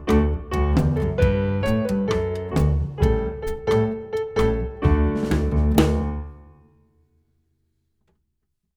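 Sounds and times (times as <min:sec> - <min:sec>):
folk song backing music: 0:00.0 - 0:06.3.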